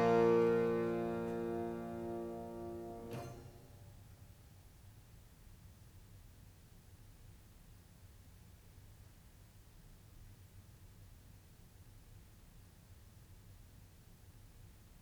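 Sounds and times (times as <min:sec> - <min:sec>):
harpsichord galliard: 0:00.0 - 0:03.5.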